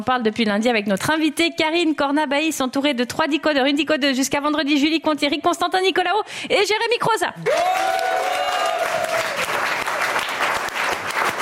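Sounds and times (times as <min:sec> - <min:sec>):
speech: 0:00.0 - 0:08.6
studio audience applauding: 0:07.4 - 0:11.4.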